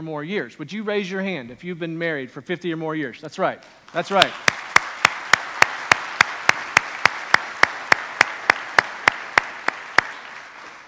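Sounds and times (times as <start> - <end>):
speech: 0.0 - 4.7
audience applause: 4.2 - 10.8.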